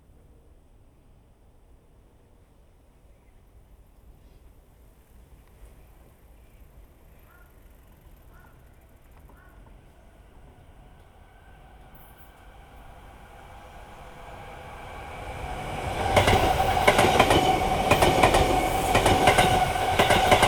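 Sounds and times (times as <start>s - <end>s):
train passing: 8.8s - 20.4s.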